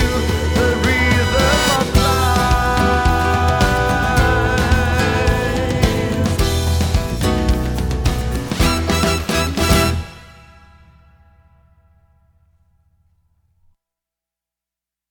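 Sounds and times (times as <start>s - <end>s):
Latin pop song: 0.0s - 10.2s.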